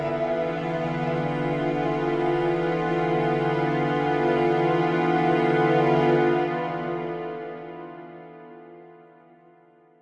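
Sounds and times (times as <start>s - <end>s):
violins intro: 0.0s - 7.8s
suspicious piano intro: 0.0s - 10.0s.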